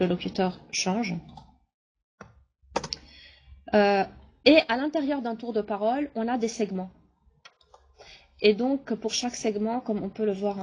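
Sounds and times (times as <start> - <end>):
speech: 0.0 - 1.4, 3.7 - 7.0, 8.4 - 10.6
computer mouse clicks during a software demonstration: 1.2 - 1.6, 2.2 - 3.1, 7.4 - 7.9.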